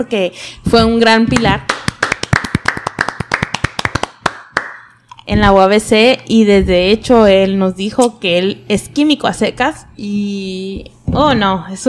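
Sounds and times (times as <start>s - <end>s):
speech: 0.0s - 1.9s, 5.3s - 11.8s
applause: 1.7s - 4.8s.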